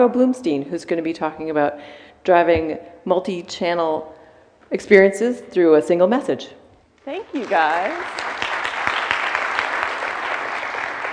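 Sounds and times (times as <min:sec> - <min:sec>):
speech: 0:00.0 - 0:08.3
people clapping: 0:07.1 - 0:11.1.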